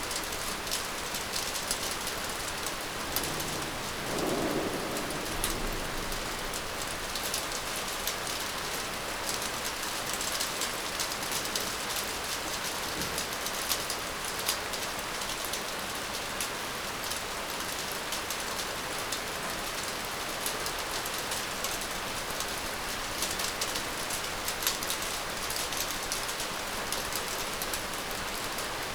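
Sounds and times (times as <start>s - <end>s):
rain on a balcony: 0.0s - 28.9s
thunder booming: 1.2s - 8.4s.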